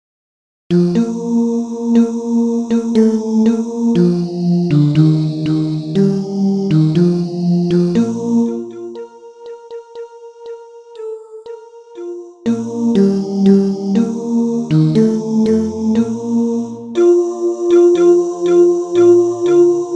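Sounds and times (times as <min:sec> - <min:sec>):
tenor singing: 0:00.7 - 0:09.0, 0:12.5 - 0:19.9.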